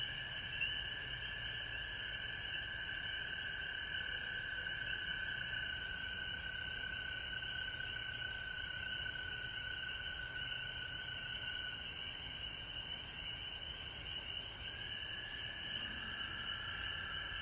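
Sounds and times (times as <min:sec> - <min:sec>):
frog chorus trilling: 0:00.0 - 0:17.4.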